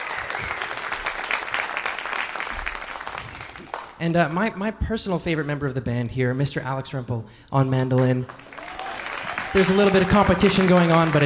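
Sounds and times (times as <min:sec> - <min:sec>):
audience applause for a songwriter after a live performance: 0:00.0 - 0:04.0, 0:08.3 - 0:11.2
speech: 0:04.0 - 0:08.4, 0:09.5 - 0:11.2.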